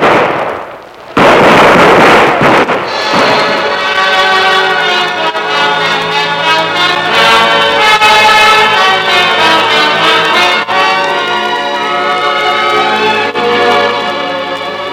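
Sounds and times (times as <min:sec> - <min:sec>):
dramatized gunfire of soldiers shooting Emiliano Zapata at the Hacienda Chinameca: 0:00.0 - 0:05.2
dramatic music: 0:02.6 - 0:14.9.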